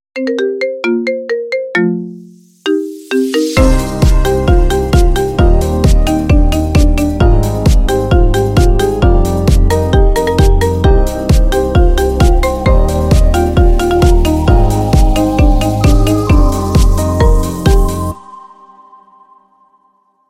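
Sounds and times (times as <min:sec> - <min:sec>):
dancing marimba ringtone: 0:00.2 - 0:18.4.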